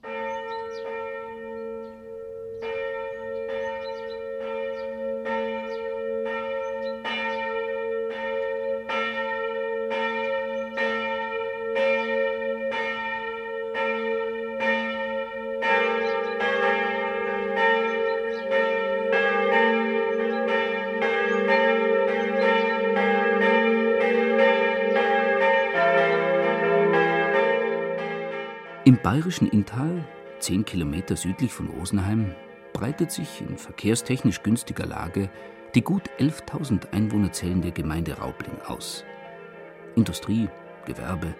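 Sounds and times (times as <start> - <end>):
church bells ringing midday in Raubling: 0.0 - 41.3
speech: 28.9 - 39.1, 40.0 - 41.3.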